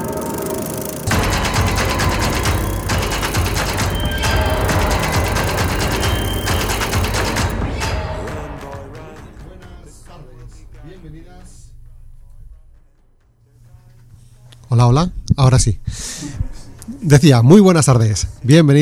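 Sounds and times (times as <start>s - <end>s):
bicycle freewheel ratchet clicking: 0.0s - 7.6s
speech: 14.8s - 16.1s, 17.0s - 18.8s.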